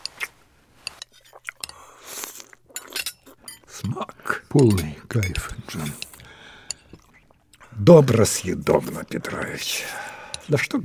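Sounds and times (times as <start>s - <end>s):
light clinks of cutlery as borscht is eaten: 0.0s - 1.8s, 2.7s - 4.0s, 4.6s - 7.0s
faint chewing while eating borscht: 0.0s - 3.8s, 5.4s - 7.7s
speech: 3.8s - 6.0s, 7.8s - 10.8s.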